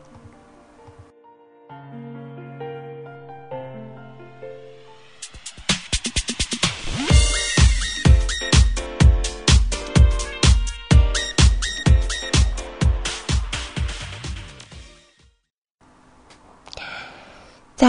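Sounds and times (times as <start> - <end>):
pop song played on radio: 5.7 - 14.8.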